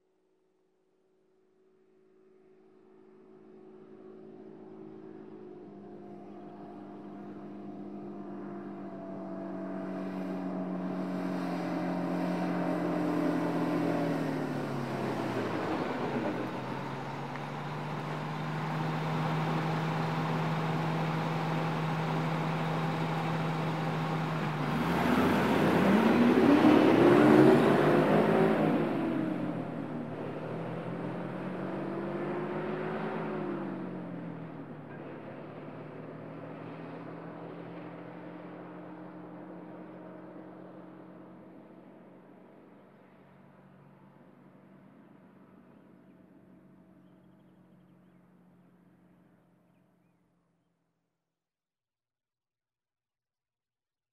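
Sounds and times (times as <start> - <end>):
traffic: 3.6 - 50.1.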